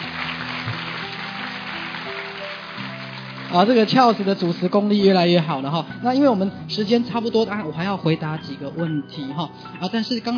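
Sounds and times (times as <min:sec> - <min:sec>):
audience applause: 0:00.0 - 0:05.0
speech: 0:03.5 - 0:10.3.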